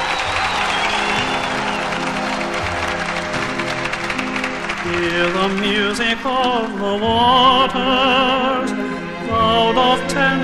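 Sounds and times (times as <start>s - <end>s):
audience applauding: 0.0s - 6.8s
speech: 4.9s - 10.4s.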